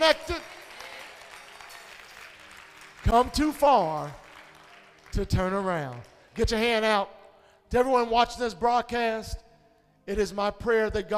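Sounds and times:
speech: 0.0s - 0.4s, 3.1s - 4.2s, 5.2s - 9.4s, 10.1s - 11.1s
audience clapping hands: 0.0s - 6.8s.

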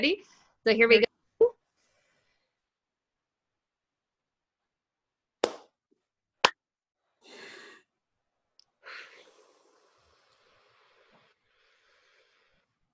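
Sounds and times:
speech: 0.0s - 1.1s
unsynchronized group clapping over video call: 5.4s - 5.7s.

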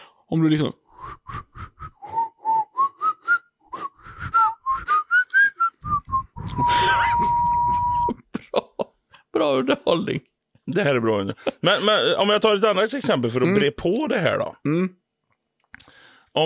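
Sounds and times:
speech: 0.3s - 1.4s, 9.4s - 15.0s
person whistling a lively tune: 1.0s - 8.2s.

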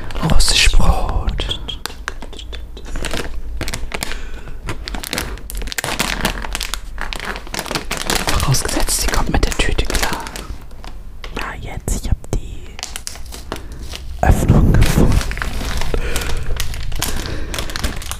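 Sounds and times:
soft whispering: 0.0s - 3.1s, 8.2s - 10.6s, 11.3s - 13.0s, 14.2s - 15.2s
plastic bag being opened, crinkling: 0.0s - 11.7s, 12.4s - 18.1s.

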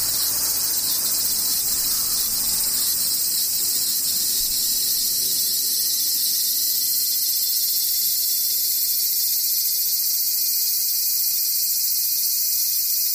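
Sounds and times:
faint whining tones: 0.0s - 6.1s
cicadas buzzing: 0.0s - 13.1s.

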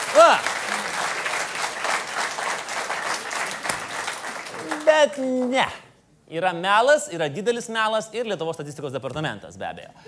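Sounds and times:
applause for the prime minister: 0.0s - 5.6s
speech: 0.2s - 0.5s, 5.0s - 10.0s.

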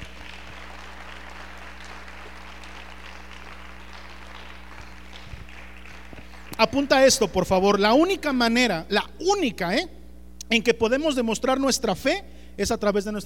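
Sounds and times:
audience applause: 0.0s - 7.0s
speech: 6.6s - 13.2s.

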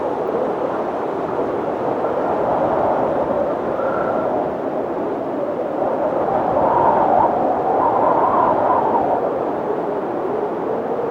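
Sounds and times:
winter windstorm roaring through the mountains: 0.0s - 11.1s.

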